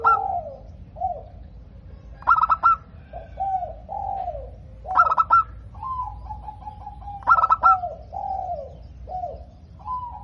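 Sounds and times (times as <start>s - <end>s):
zebra dove cooing with stuttering pulsed notes: 0.0s - 10.2s.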